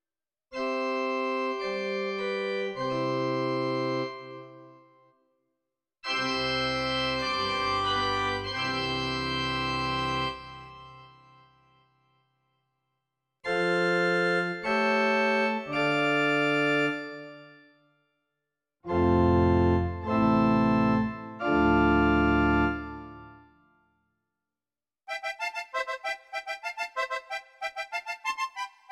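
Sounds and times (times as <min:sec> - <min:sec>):
Casio CT-S1000V organ: 0:00.6 - 0:04.8, 0:06.1 - 0:11.4, 0:13.5 - 0:17.7, 0:18.9 - 0:23.6, 0:25.1 - 0:28.9.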